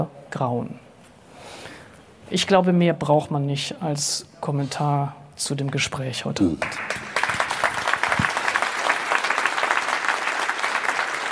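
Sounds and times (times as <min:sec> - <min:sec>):
speech: 0:00.0 - 0:00.8, 0:02.3 - 0:07.1
audience applause: 0:06.6 - 0:11.3.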